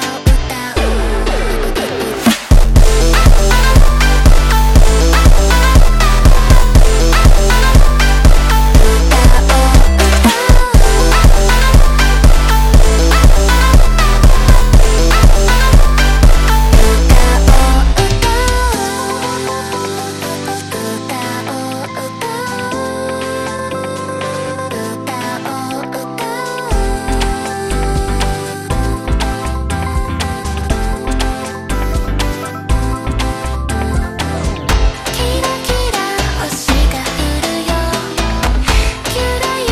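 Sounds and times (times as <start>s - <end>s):
slowed montagem music: 0.4s - 24.4s, 26.4s - 39.6s.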